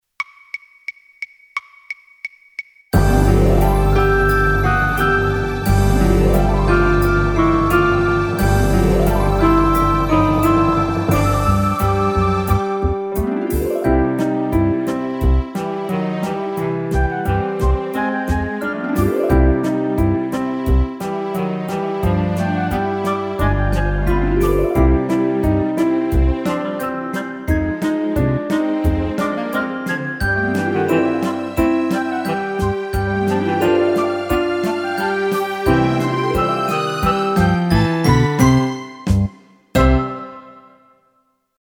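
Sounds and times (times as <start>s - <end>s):
orchestra with piano: 3.0s - 41.0s.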